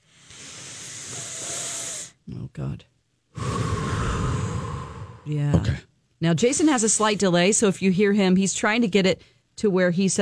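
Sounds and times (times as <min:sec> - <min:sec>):
breath blown out hard as if extinguishing a candle: 0:00.0 - 0:02.2, 0:03.3 - 0:05.3
speech: 0:02.6 - 0:03.0, 0:05.2 - 0:10.2.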